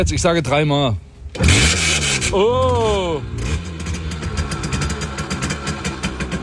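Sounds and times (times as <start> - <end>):
speech: 0.0 - 3.6
Simson S51 two-stroke moped engine running: 1.4 - 6.4.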